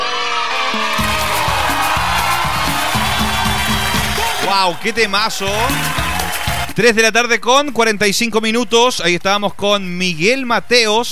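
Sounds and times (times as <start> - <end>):
audience applause: 0.0 - 6.8
speech: 0.7 - 1.0, 4.5 - 6.1, 6.8 - 11.0.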